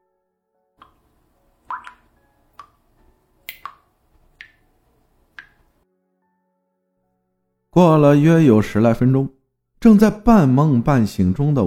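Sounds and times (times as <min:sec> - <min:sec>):
water dripping: 0:00.8 - 0:05.8
speech: 0:07.8 - 0:11.6.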